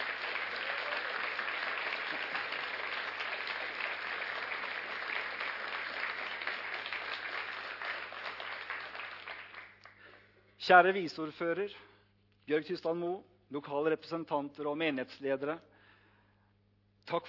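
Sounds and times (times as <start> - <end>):
audience applause: 0.0 - 10.2
speech: 10.7 - 11.9, 12.5 - 15.7.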